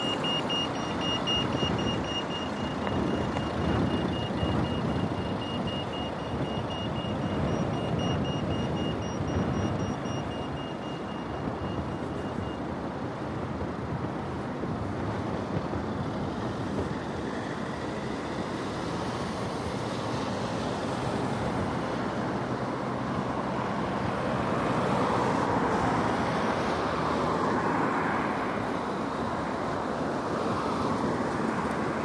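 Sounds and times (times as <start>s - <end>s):
Colwyn Bay soundscape: 0.0s - 32.0s.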